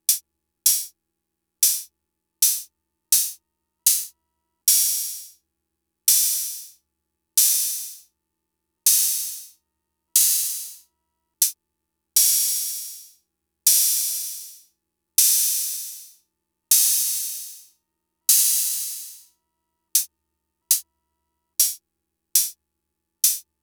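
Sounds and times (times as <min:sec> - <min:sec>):
Fricke MFB-522 open hi-hats: 0:00.0 - 0:01.0, 0:01.6 - 0:04.1, 0:04.7 - 0:05.4, 0:06.1 - 0:06.8, 0:07.4 - 0:08.1, 0:08.9 - 0:09.6, 0:10.2 - 0:11.6, 0:12.2 - 0:19.3, 0:21.6 - 0:21.8, 0:22.4 - 0:22.6, 0:23.2 - 0:23.5.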